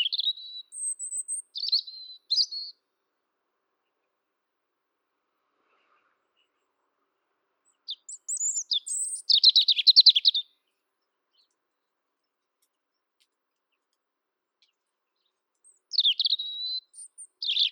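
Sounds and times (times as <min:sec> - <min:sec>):
Erithacus rubecula: 0:00.0 - 0:02.9, 0:07.7 - 0:11.6, 0:14.6 - 0:17.7.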